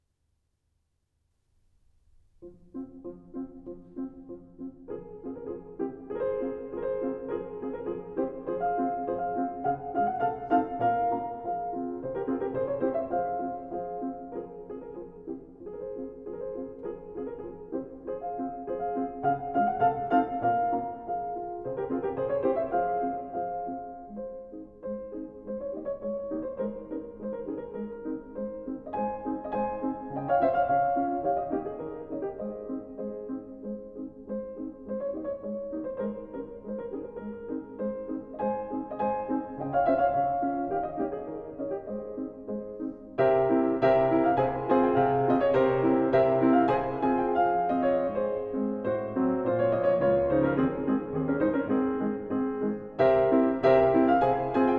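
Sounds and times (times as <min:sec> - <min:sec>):
piano: 0:01.8 - 0:54.7.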